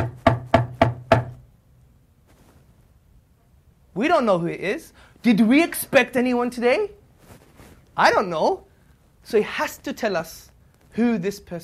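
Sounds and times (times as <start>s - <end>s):
sharp knocks on a door: 0.0s - 1.4s
speech: 4.0s - 7.0s, 8.0s - 11.6s.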